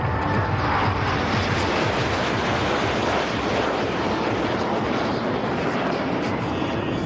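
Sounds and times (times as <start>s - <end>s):
Indian Air Force Surya Kiran aerobatic jet flypast over the temple town: 0.0s - 7.0s.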